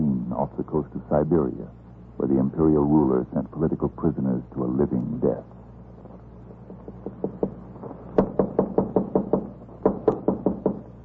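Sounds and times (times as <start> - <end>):
speech: 0.4 - 5.6
knocking on a door in a Tsarist-era prison on Sakhalin island: 6.9 - 7.6, 8.2 - 10.9.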